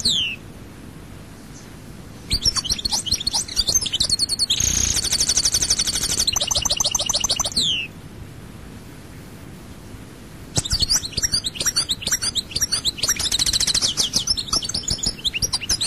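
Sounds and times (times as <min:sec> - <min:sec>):
European goldfinch twittering song: 0:02.3 - 0:07.9, 0:10.6 - 0:15.8.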